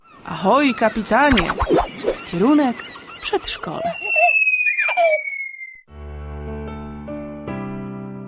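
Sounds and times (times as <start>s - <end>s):
speech: 0.3s - 4.1s
preschool children shouting in studio: 3.7s - 5.7s
whistle-like tone: 4.0s - 5.8s.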